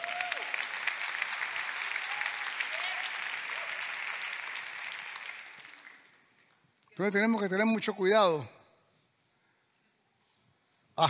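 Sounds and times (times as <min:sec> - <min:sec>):
audience applause: 0:00.0 - 0:06.5
speech: 0:07.0 - 0:08.6.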